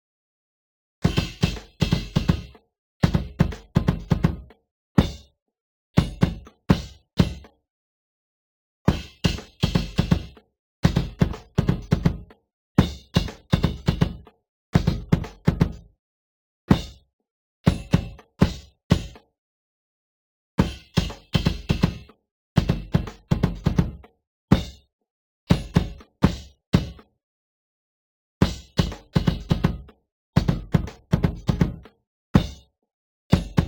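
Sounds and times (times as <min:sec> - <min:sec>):
bass drum: 0:01.1 - 0:05.3, 0:06.0 - 0:07.5, 0:08.9 - 0:15.8, 0:17.7 - 0:19.2, 0:20.6 - 0:24.8, 0:28.4 - 0:32.6, 0:33.3 - 0:33.6.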